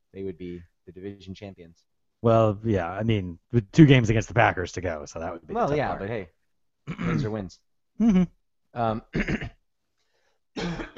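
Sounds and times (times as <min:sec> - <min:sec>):
speech: 0:00.2 - 0:09.5
person coughing: 0:06.9 - 0:07.4, 0:09.1 - 0:09.6, 0:10.6 - 0:10.9.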